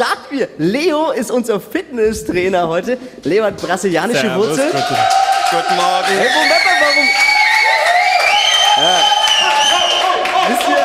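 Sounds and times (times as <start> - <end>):
speech: 0.0 - 7.3
studio audience clapping: 4.1 - 10.8.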